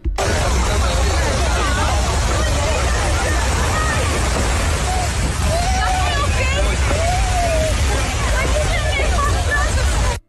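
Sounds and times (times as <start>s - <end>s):
crowd noise: 0.0s - 10.2s
people screaming for help during hotel fire: 1.4s - 10.1s
wailing cries: 4.8s - 8.4s.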